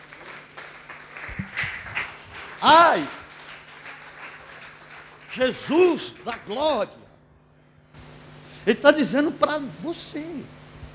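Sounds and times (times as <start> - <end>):
applause from a gathering at a religious service: 0.0 - 5.3
speech: 2.6 - 3.2, 5.4 - 7.0, 8.7 - 10.6.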